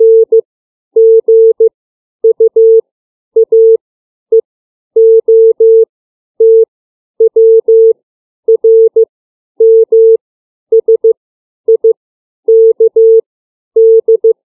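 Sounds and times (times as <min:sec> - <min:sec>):
CW Morse code beeps of the alphabet: 0:00.0 - 0:00.4, 0:01.0 - 0:01.7, 0:02.3 - 0:02.8, 0:03.4 - 0:03.8, 0:05.0 - 0:05.8, 0:06.4 - 0:06.6, 0:07.3 - 0:09.0, 0:09.6 - 0:10.2, 0:10.8 - 0:11.1, 0:12.5 - 0:13.2, 0:13.8 - 0:14.4.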